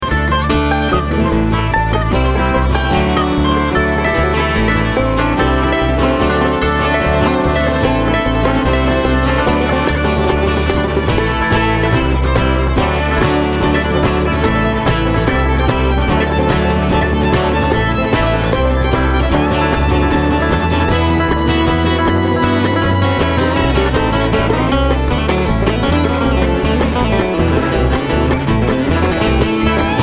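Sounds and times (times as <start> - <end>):
traffic jam: 0.0 - 30.0.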